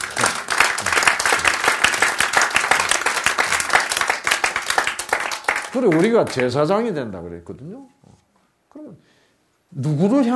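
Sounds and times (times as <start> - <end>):
audience applause: 0.0 - 6.6
speech: 5.7 - 8.0, 9.7 - 10.3.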